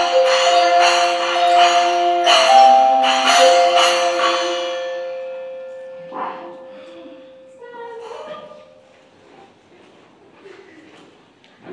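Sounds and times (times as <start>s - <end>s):
instrumental end of year concert music: 0.0s - 7.6s.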